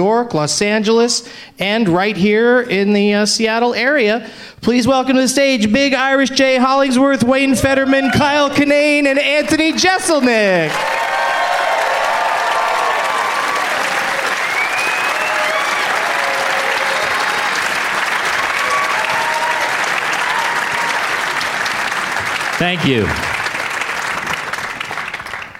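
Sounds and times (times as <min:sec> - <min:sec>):
speech: 0:00.0 - 0:11.0, 0:22.6 - 0:23.3
audience applause and cheering: 0:07.6 - 0:25.5.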